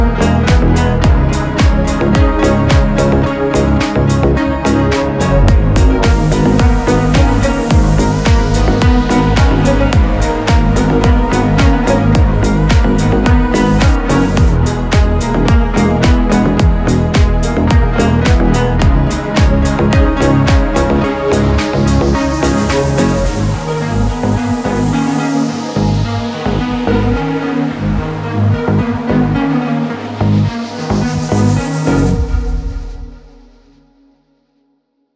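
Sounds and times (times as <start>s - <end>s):
bass music from a broken car: 0.0s - 33.5s.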